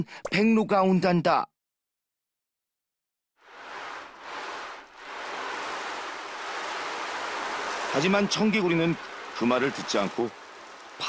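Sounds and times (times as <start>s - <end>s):
speech: 0.0s - 1.5s, 7.9s - 10.4s
ocean waves breaking on a seashore: 3.4s - 11.0s.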